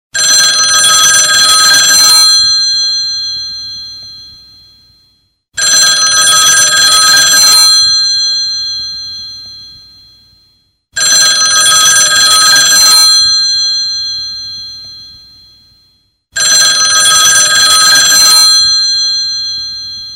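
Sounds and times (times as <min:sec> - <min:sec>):
classic loud ringtone: 0:00.2 - 0:20.1.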